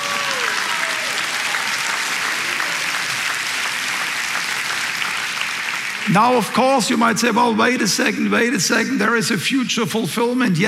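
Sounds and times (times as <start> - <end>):
audience applause: 0.0 - 7.4
speech: 6.1 - 10.6.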